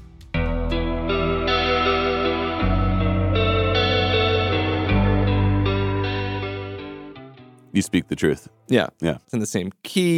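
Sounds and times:
echoey chorus-drenched guitar arpeggio: 0:00.4 - 0:08.6
deep sustained bass tones: 0:00.5 - 0:07.2
speech: 0:07.8 - 0:10.1.

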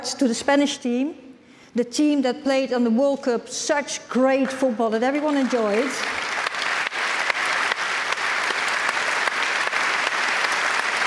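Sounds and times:
speech: 0:00.1 - 0:06.3
audience applause after speech: 0:05.3 - 0:11.0.

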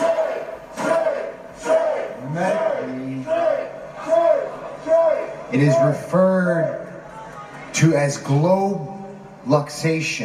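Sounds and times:
wrestling crowd chanting: 0:00.0 - 0:06.0
speech: 0:05.5 - 0:06.8, 0:07.8 - 0:10.2.

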